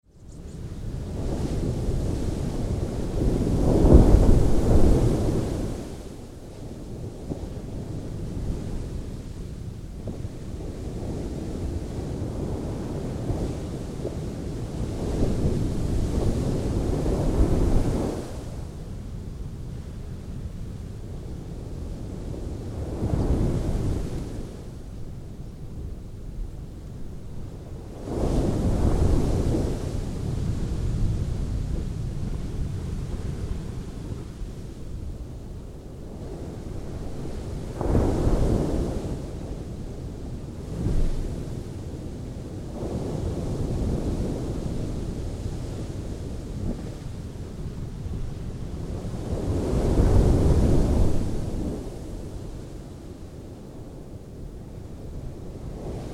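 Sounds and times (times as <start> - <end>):
dull ocean sea waves behind a sand bank: 0.2 - 56.1.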